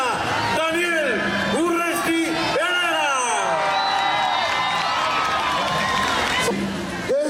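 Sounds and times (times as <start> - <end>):
crowd applause and cheering: 0.1 - 7.1.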